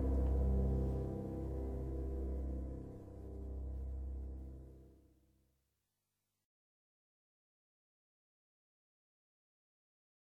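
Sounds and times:
acoustic music: 0:00.0 - 0:04.9.

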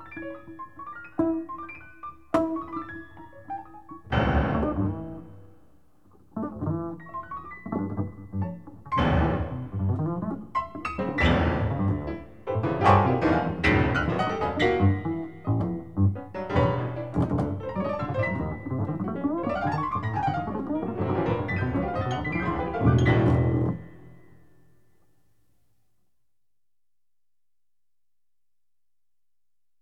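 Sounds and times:
piano in a duet: 0:00.0 - 0:24.9
bass in a duet: 0:04.0 - 0:05.6, 0:06.3 - 0:24.4.

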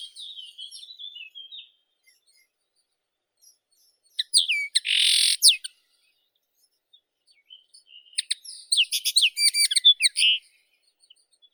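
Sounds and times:
common linnet Acanthis cannabina singing: 0:00.0 - 0:02.5, 0:03.4 - 0:05.7, 0:07.4 - 0:10.5.

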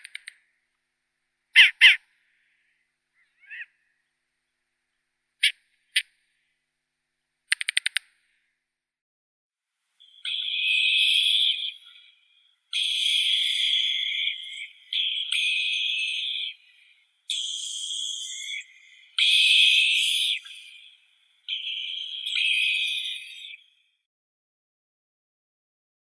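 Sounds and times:
Asio flammeus short-eared owl fledgling calling: 0:01.6 - 0:02.0, 0:03.3 - 0:03.7, 0:10.0 - 0:23.7.

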